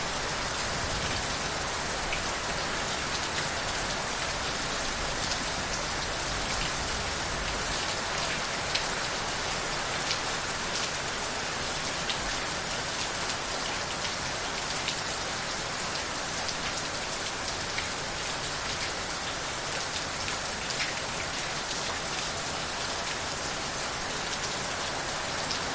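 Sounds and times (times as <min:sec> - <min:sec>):
heavy rain outside a house: 0:00.0 - 0:25.7.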